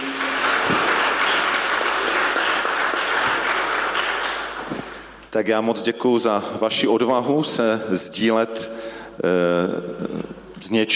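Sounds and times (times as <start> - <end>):
audience applause: 0.0 - 5.2
speech: 5.4 - 10.9.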